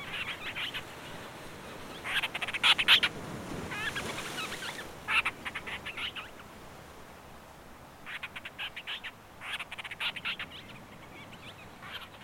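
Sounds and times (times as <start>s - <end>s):
Madeiran storm petrel calls: 0.0s - 1.0s, 2.0s - 6.4s, 8.0s - 12.2s.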